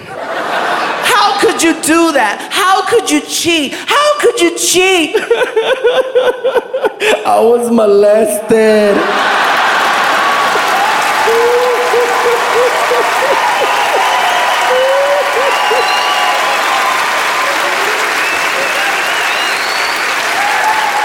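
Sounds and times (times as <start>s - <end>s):
audience laughing: 0.0s - 1.1s, 5.1s - 7.2s, 8.9s - 16.5s
speech: 1.6s - 9.3s
audience clapping: 9.1s - 21.0s.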